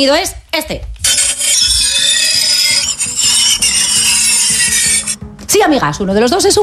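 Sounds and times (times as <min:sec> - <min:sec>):
speech: 0:00.0 - 0:00.9, 0:05.6 - 0:06.6
angle grinder running: 0:01.1 - 0:05.2.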